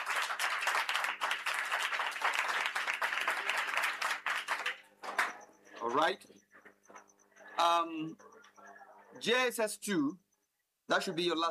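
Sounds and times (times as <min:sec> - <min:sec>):
crowd applause: 0:00.0 - 0:05.4
speech: 0:05.9 - 0:06.4, 0:07.6 - 0:08.3, 0:09.2 - 0:10.2, 0:10.9 - 0:11.4.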